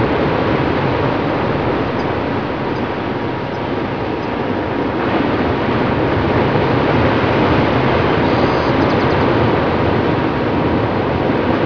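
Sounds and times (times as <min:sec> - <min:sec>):
waves: 0:00.0 - 0:11.6.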